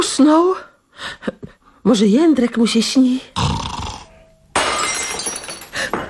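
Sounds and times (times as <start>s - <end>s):
speech: 0.2s - 3.7s
empty wine glass dropped and shattering: 4.3s - 6.0s
glass shards tinkling: 4.5s - 5.9s.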